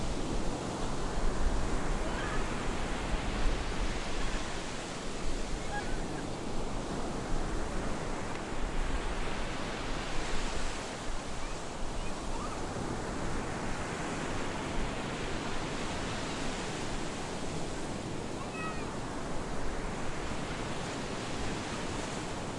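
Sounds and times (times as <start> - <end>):
beach ambience in Cyprus: 0.0 - 22.5.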